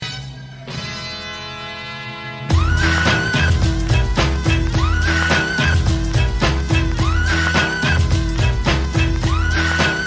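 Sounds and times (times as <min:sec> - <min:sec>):
music beat: 0:02.4 - 0:10.0.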